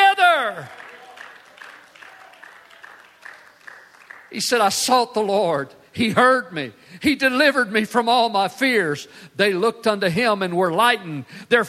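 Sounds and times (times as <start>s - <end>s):
audience clapping hands: 0.0s - 4.9s
speech: 4.3s - 11.6s.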